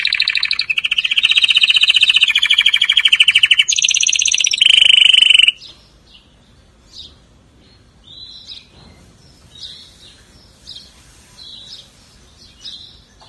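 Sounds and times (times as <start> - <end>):
canary song with rolled trills: 0.0 - 13.2.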